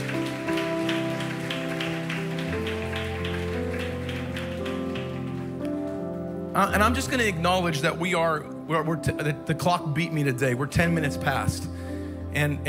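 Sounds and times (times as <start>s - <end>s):
audience applause: 0.0s - 6.0s
speech: 6.6s - 11.7s, 12.4s - 12.6s.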